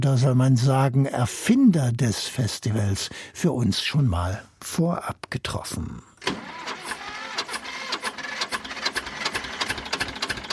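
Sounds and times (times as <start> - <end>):
speech: 0.0 - 6.6
1965 tractor engine chugging: 6.2 - 10.5.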